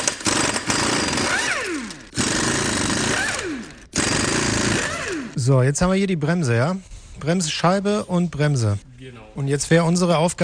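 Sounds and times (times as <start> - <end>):
impact wrench spinning lug nuts off a car wheel: 0.0 - 5.4
speech: 5.5 - 10.4.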